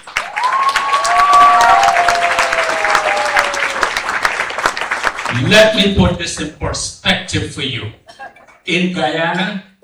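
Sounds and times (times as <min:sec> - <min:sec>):
audience clapping hands: 0:00.0 - 0:06.6
speech: 0:05.4 - 0:08.0, 0:08.7 - 0:09.7.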